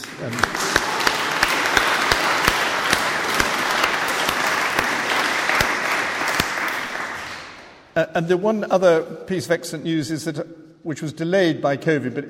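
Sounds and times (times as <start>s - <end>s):
audience applause: 0.0s - 7.8s
speech: 0.2s - 0.6s, 8.0s - 12.2s.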